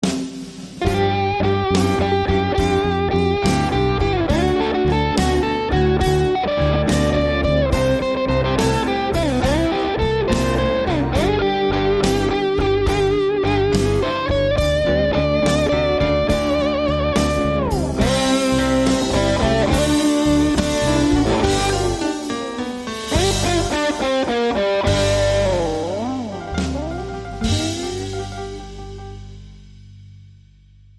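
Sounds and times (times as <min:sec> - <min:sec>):
blues music: 0:00.0 - 0:30.9.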